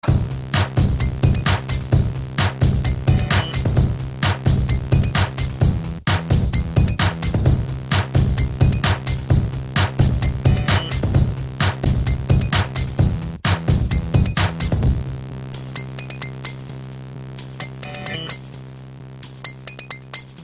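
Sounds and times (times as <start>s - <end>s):
hip hop music: 0.1s - 14.9s, 17.5s - 18.5s.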